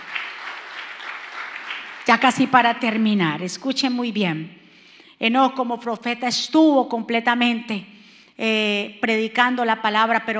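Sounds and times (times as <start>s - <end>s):
audience applause: 0.0s - 2.2s
speech: 2.1s - 4.6s, 5.2s - 10.3s.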